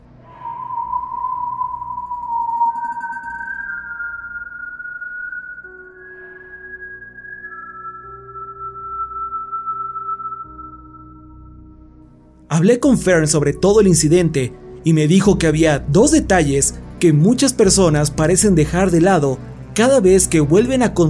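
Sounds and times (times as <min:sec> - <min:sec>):
continuous whistling tone: 0:00.0 - 0:12.2
speech: 0:12.6 - 0:21.0.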